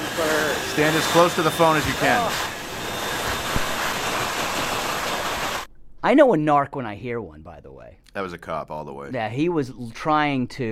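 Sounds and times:
hand dryer running: 0.0 - 5.7
speech: 0.8 - 2.5, 6.0 - 10.7.

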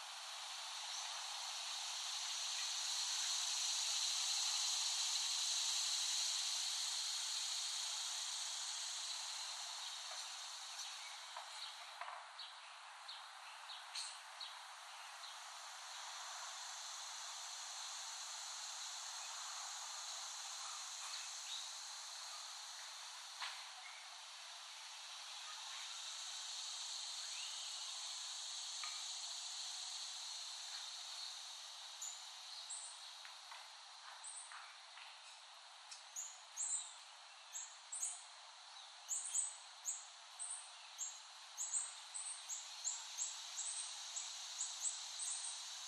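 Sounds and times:
cicadas droning: 0.0 - 45.8
faint chirps: 0.1 - 45.8.

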